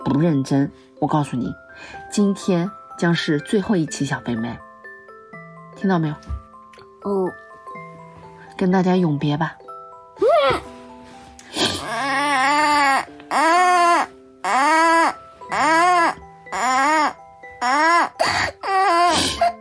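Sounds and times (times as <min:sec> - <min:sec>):
speech: 0:00.1 - 0:04.6, 0:05.8 - 0:06.4, 0:07.0 - 0:07.4, 0:08.6 - 0:09.6, 0:13.3 - 0:15.0
child crying: 0:10.2 - 0:10.7, 0:11.6 - 0:19.5.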